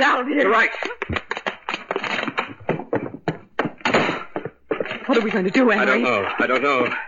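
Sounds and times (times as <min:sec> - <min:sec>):
speech: 0:00.0 - 0:01.2, 0:05.1 - 0:07.0
bottle of chemical serum knocked to the floor: 0:01.0 - 0:05.2.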